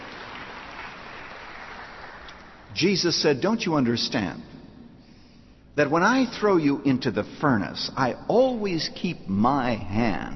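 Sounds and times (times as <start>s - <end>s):
audience clapping in agreement during a religious talk: 0.0s - 2.7s
speech: 2.8s - 4.5s, 5.8s - 10.3s.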